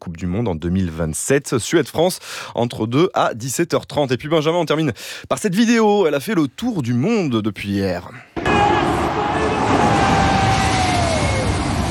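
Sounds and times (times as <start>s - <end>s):
speech: 0.1s - 8.8s
two jet airliners passing low overhead over a stadium: 8.6s - 11.8s.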